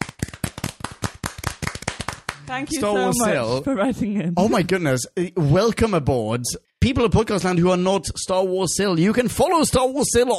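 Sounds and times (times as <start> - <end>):
hands clapping in applause: 0.0 - 2.8
speech: 2.5 - 10.3.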